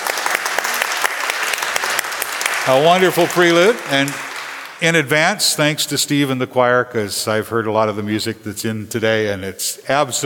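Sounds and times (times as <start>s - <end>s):
church congregation clapping for a family's prelude: 0.0s - 5.4s
speech: 2.6s - 4.2s, 4.8s - 10.2s.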